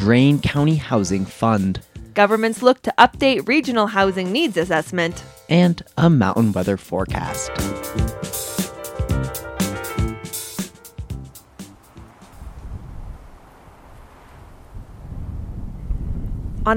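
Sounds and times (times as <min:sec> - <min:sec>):
speech: 0:00.0 - 0:08.4
short musical passage: 0:00.0 - 0:12.4
wind rustling through aspen leaves on a mountainside above Ouray Colorado: 0:11.1 - 0:16.7.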